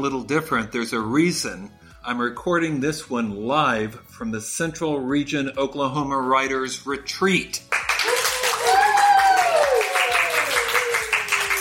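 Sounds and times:
speech: 0.0s - 7.7s
live audience applause: 7.7s - 11.5s.

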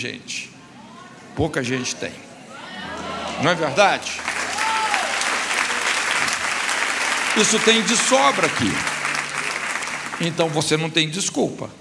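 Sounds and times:
speech: 0.0s - 0.5s, 1.4s - 2.3s, 3.4s - 4.3s, 7.4s - 9.0s, 10.2s - 11.7s
audience applause: 2.9s - 11.1s.

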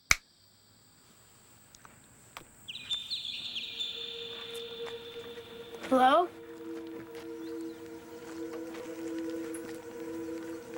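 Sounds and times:
birds chirping: 2.4s - 10.7s
speech: 5.9s - 6.4s.

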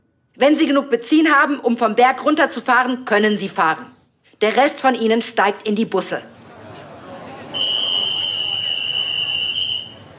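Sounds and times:
speech: 0.4s - 6.4s
low murmur: 3.9s - 10.1s
firefighter's whistle blast: 7.6s - 10.1s.

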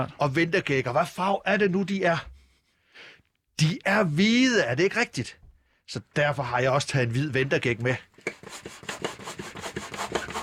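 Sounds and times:
speech: 0.0s - 2.3s, 3.0s - 8.8s
hand pump inflating a balloon: 8.2s - 10.4s.

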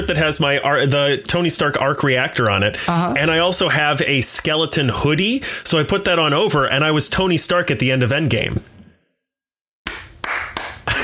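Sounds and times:
speech: 0.0s - 8.7s
hand claps: 9.8s - 11.0s.

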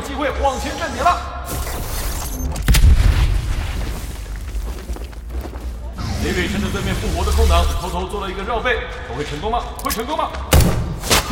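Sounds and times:
team shooter video game noise: 0.0s - 11.2s
speech: 0.2s - 1.6s, 6.2s - 11.2s
headshot gunshot in a team shooter video game match: 2.6s - 3.6s, 10.5s - 11.2s.

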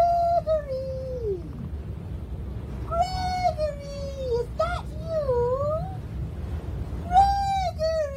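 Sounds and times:
voice imitating a seagull cry: 0.0s - 1.6s, 2.8s - 6.0s, 7.0s - 8.1s
low rumble: 0.0s - 8.1s.

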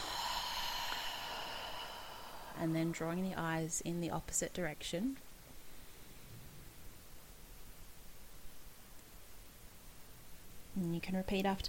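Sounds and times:
slow deep breath out after a deep inhale: 0.0s - 2.9s
speech: 2.6s - 5.3s, 10.8s - 11.6s.

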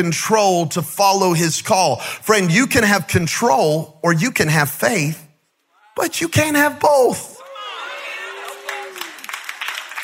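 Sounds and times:
speech: 0.0s - 5.2s, 6.0s - 7.3s
weak scattered audience clapping: 8.4s - 10.0s.

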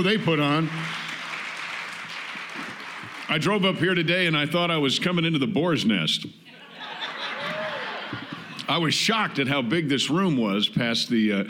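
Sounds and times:
speech: 0.0s - 1.0s, 3.3s - 6.4s, 8.7s - 11.4s
audience applause: 0.0s - 3.5s, 7.3s - 8.4s
laughter: 6.5s - 8.9s.

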